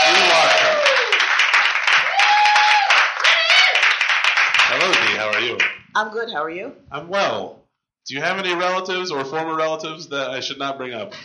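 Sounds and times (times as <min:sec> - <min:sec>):
audience applause welcoming a performer to a festival stage: 0:00.0 - 0:05.8
speech: 0:06.0 - 0:11.2.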